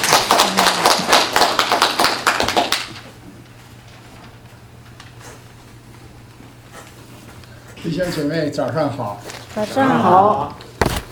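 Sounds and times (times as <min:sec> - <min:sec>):
audience applause: 0:00.0 - 0:02.9
speech: 0:07.9 - 0:10.6.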